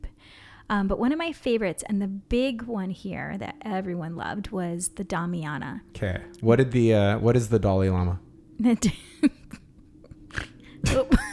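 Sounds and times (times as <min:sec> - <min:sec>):
speech: 0:00.7 - 0:09.4, 0:10.4 - 0:11.3
snorting laughter: 0:09.2 - 0:11.3.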